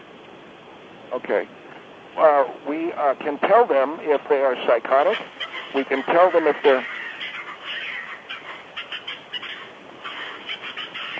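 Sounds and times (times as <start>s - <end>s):
speech: 1.1s - 7.0s
squirrel chattering: 4.9s - 11.1s.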